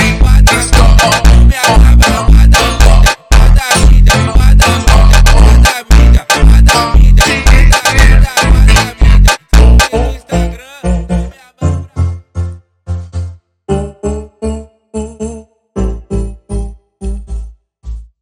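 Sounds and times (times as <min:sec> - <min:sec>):
slowed funk music: 0:00.0 - 0:13.0.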